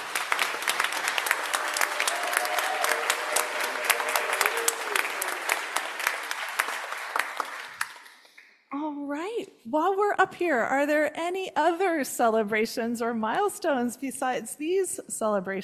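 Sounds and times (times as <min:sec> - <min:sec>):
roomful of people applauding: 0:00.0 - 0:08.5
speech: 0:09.7 - 0:15.6.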